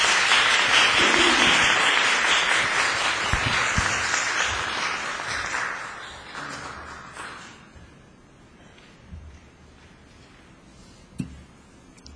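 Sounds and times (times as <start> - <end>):
audience applause welcoming a speaker: 0.0 - 7.7.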